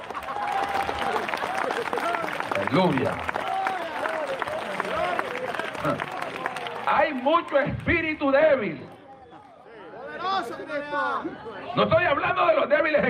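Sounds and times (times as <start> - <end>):
audience clapping: 0.0 - 8.2
speech: 2.7 - 3.4, 5.8 - 6.1, 6.9 - 8.9, 10.4 - 13.0.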